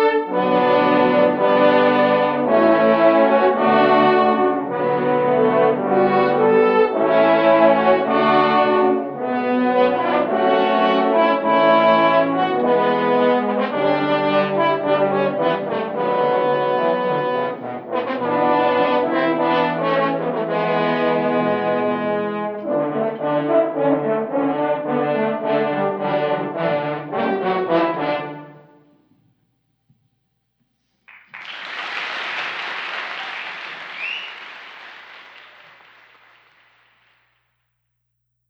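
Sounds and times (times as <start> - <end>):
horn choir playing: 0.0 - 28.9.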